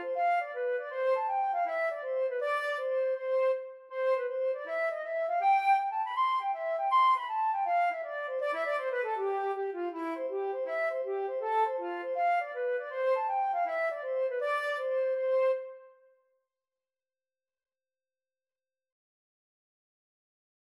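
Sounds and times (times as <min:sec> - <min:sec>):
flute playing a dance tune: 0:00.2 - 0:15.9.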